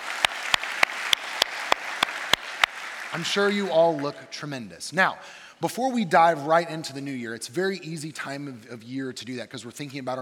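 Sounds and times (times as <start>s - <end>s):
audience clapping: 0.0s - 4.4s
speech: 3.1s - 10.1s.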